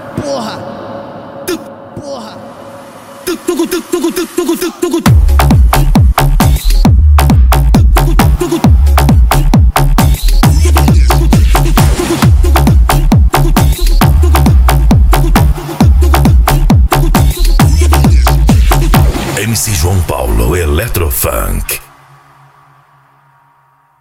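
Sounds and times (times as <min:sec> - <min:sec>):
electro funk rave music: 0:03.3 - 0:21.8.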